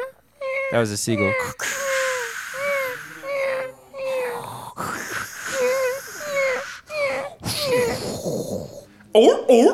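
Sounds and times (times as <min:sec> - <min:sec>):
speech: 0:00.7 - 0:01.7, 0:09.2 - 0:09.7
person imitating a walrus: 0:01.2 - 0:08.8.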